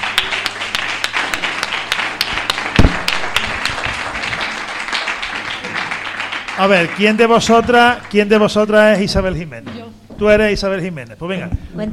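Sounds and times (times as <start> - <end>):
crowd applauding three girls: 0.0 - 9.0
heavy thump: 2.8 - 3.4
speech: 6.6 - 11.9.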